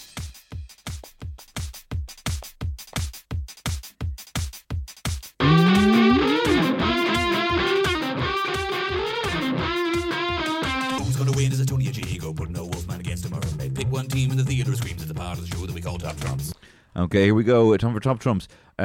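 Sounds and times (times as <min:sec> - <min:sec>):
pounding beat: 0:00.8 - 0:16.6
distorted synth-heavy game segment theme music: 0:05.4 - 0:11.1
speech: 0:15.8 - 0:18.8.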